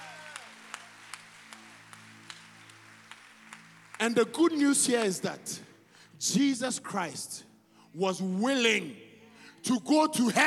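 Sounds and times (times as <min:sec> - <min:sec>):
audience clapping: 0:00.0 - 0:05.3
speech: 0:04.0 - 0:09.0, 0:09.6 - 0:10.4.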